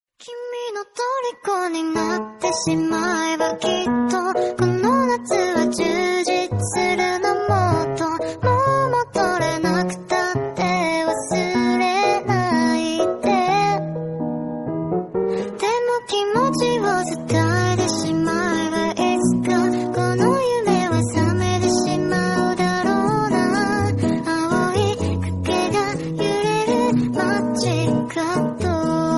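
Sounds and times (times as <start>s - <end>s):
kawaii anime instrumental music: 1.0s - 29.1s.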